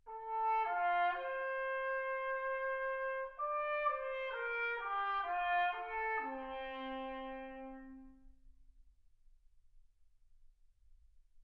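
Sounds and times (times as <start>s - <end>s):
trumpet: 0.0s - 8.4s.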